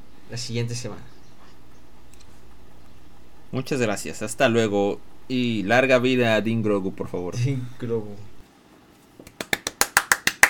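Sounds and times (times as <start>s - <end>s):
speech: 0.3s - 1.2s, 3.5s - 8.3s
hand claps: 9.2s - 10.4s.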